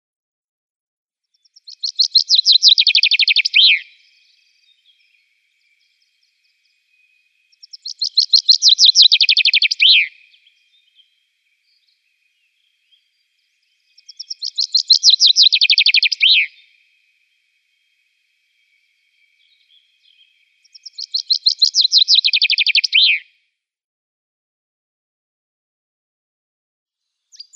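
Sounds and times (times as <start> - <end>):
common chaffinch song with a downward trill and final flourish: 1.3 - 23.3, 27.3 - 27.5.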